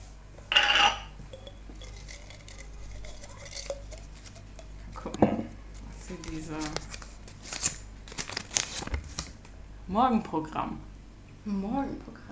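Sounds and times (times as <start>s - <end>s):
items clinking and scraping inside a glass jar: 0.5s - 4.7s
speech: 9.9s - 12.3s.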